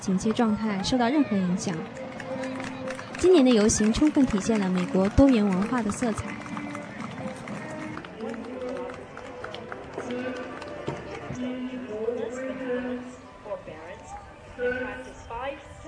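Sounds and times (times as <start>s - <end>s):
speech: 0.0s - 2.5s, 3.2s - 6.5s
crowd chatter at a parade: 0.0s - 15.8s
horses' hooves clip-clopping on pavement at a parade: 0.1s - 11.4s.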